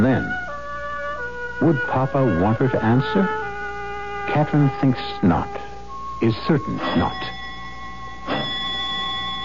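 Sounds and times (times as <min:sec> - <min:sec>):
speech: 0:01.6 - 0:03.4, 0:04.3 - 0:07.4
doorbell ringing: 0:06.7 - 0:09.4.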